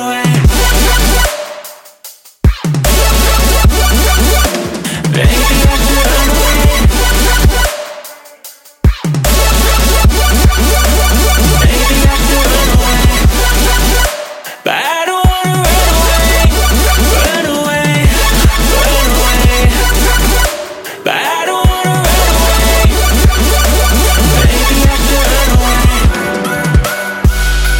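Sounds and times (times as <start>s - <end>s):
trap beat: 0.2s - 27.7s.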